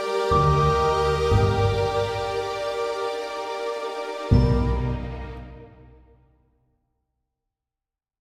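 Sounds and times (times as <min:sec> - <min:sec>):
alchemy lab ambience: 0:00.0 - 0:06.0.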